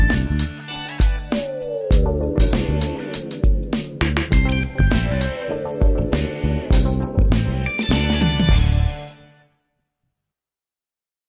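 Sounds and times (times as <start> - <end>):
strings playing: 1.9 - 9.0.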